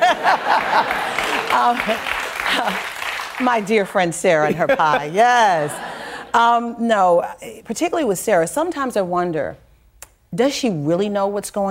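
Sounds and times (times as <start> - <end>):
laughter: 0.0 - 2.9, 4.4 - 6.5
crowd: 0.0 - 3.4
speech: 1.6 - 9.6, 10.3 - 11.7.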